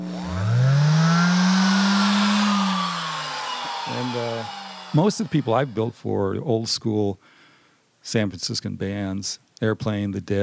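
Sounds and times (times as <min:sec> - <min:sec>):
hand sander running: 0:00.0 - 0:06.2
speech: 0:04.9 - 0:07.4, 0:08.0 - 0:10.4.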